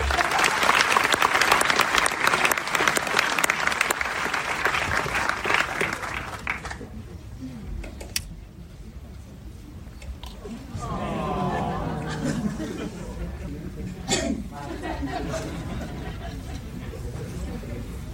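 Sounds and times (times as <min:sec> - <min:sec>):
audience applause: 0:00.0 - 0:07.0, 0:10.8 - 0:12.6
laughter: 0:10.7 - 0:17.6.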